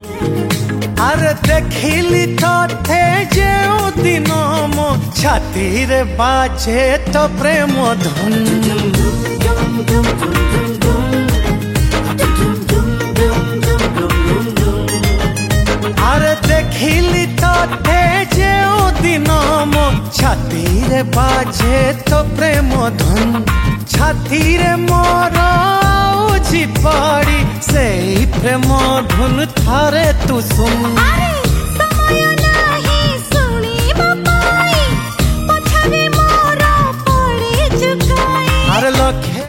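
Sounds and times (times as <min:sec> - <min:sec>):
romantic song: 0:00.0 - 0:39.4.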